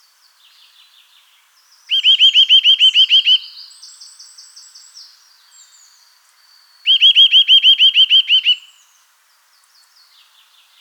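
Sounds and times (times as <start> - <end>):
Eurasian nuthatch ringing whistled calls: 1.9 - 3.5, 6.9 - 8.8.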